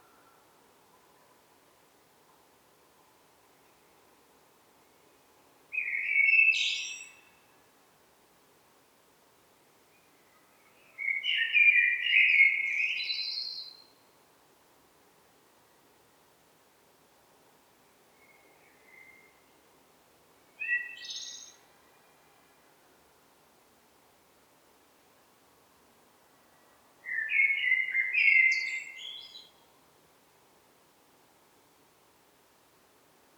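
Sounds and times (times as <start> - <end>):
hiss: 0.0 - 33.3
common blackbird singing: 11.0 - 13.8, 20.6 - 21.6, 27.1 - 29.5.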